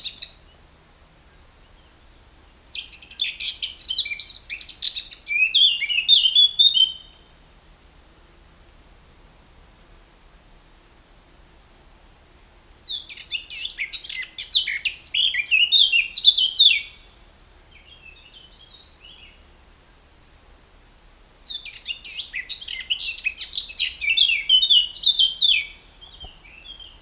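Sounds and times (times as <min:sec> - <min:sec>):
light hiss: 0:00.0 - 0:27.0
Eurasian blackcap singing: 0:02.8 - 0:07.2, 0:12.7 - 0:17.2, 0:21.4 - 0:27.0.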